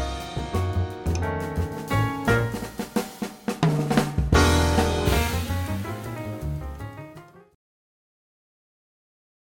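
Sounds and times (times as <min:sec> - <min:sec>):
jazz trio playing: 0:00.0 - 0:07.6.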